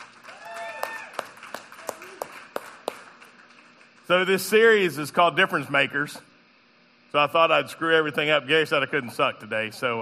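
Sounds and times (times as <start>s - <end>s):
audience applause: 0.0s - 4.3s
faint cheering: 0.2s - 2.3s
speech: 4.1s - 6.3s, 7.1s - 10.0s.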